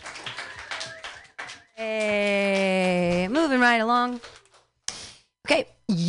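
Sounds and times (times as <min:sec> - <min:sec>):
audience clapping hands: 0:00.0 - 0:04.8
speech: 0:01.8 - 0:02.4, 0:05.5 - 0:06.0.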